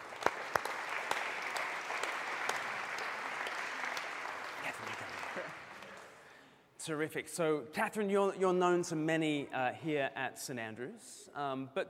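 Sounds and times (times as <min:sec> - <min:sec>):
audience applause: 0:00.0 - 0:06.3
speech: 0:06.8 - 0:11.8.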